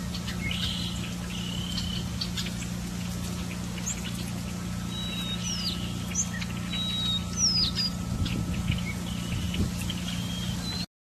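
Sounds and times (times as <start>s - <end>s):
woodpeckers: 0.0s - 10.9s.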